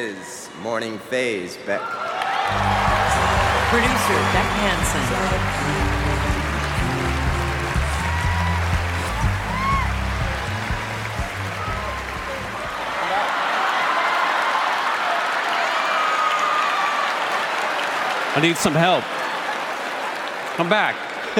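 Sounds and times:
speech: 0:00.0 - 0:06.2, 0:18.4 - 0:19.2, 0:20.6 - 0:21.3
crowd applause and uproar at the Grammy Awards telecast: 0:01.7 - 0:21.3
music playing at the Grammy Awards telecast: 0:02.5 - 0:13.2.

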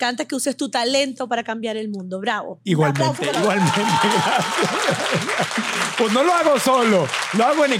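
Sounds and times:
speech: 0:00.0 - 0:07.7
applause: 0:02.8 - 0:07.7
laughter: 0:02.9 - 0:07.7.

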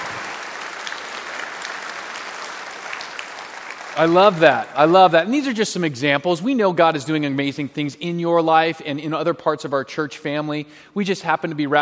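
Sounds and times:
round of applause: 0:00.0 - 0:04.9
speech: 0:04.0 - 0:11.7.

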